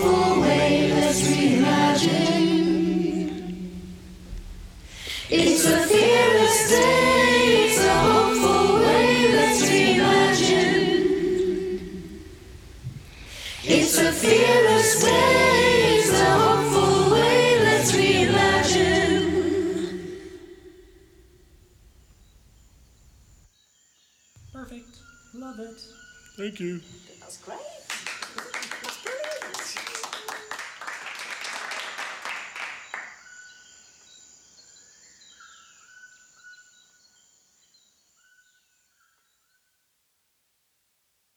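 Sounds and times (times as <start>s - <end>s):
a cappella vocals in the rainforest: 0.0s - 21.3s.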